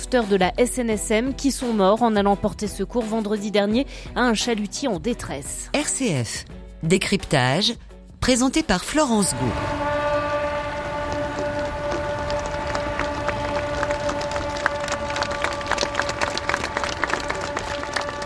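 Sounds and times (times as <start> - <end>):
speech: 0.1 - 9.9
ships' foghorns sounding in tribute: 9.2 - 18.2.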